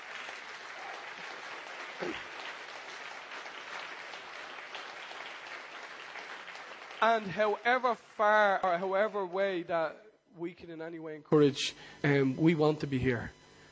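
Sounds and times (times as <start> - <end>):
audience applause: 0.0 - 7.7
speech: 2.0 - 2.4, 7.0 - 13.4.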